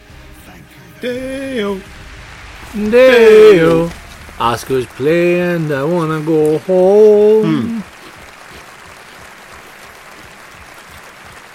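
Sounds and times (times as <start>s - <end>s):
speech: 0.5s - 2.0s, 2.7s - 7.9s
one person clapping into a microphone at an awards-style event: 7.4s - 11.5s.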